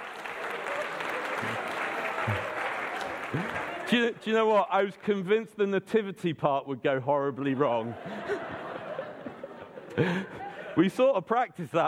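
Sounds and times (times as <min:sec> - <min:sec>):
audience applause: 0:00.0 - 0:04.2
laughter: 0:01.1 - 0:03.9, 0:07.5 - 0:11.0
speech: 0:01.4 - 0:01.7, 0:02.3 - 0:02.5, 0:03.3 - 0:08.7, 0:10.0 - 0:11.8.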